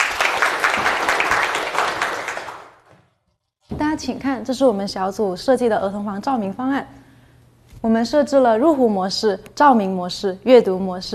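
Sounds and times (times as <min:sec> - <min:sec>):
audience applause: 0:00.0 - 0:02.9
speech: 0:04.0 - 0:07.0, 0:07.8 - 0:11.1.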